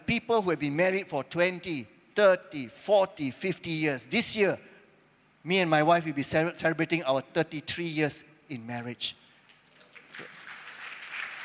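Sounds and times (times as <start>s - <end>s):
speech: 0.2s - 4.7s, 5.4s - 9.2s
audience applause: 10.0s - 11.4s.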